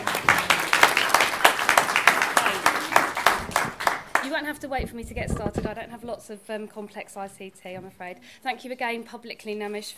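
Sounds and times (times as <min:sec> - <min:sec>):
audience applause: 0:00.0 - 0:04.4
speech: 0:04.5 - 0:09.9.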